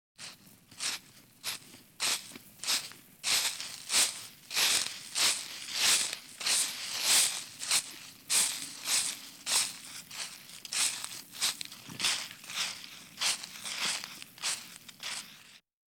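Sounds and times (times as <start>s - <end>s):
one person walking on grass and dirt: 0.2s - 15.6s.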